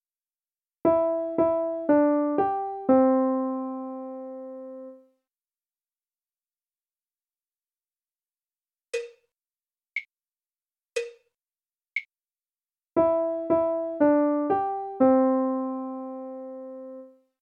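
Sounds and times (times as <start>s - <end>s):
melody: 0.9s - 5.0s, 13.0s - 17.1s.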